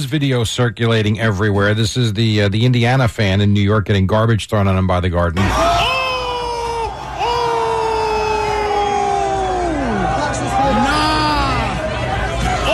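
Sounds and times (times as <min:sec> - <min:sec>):
speech: 0:00.0 - 0:05.9
arena crowd roaring: 0:05.4 - 0:12.7.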